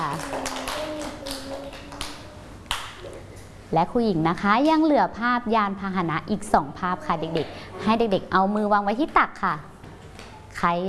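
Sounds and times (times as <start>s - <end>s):
children clapping hands: 0.0s - 3.1s
speech: 3.7s - 9.7s, 10.6s - 10.8s.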